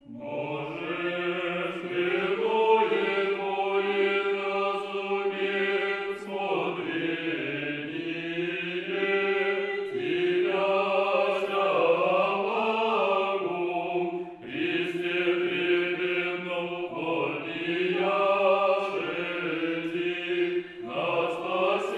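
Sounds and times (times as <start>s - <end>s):
irmos chant in tone 5 of the fourth ode: 0.0s - 21.9s.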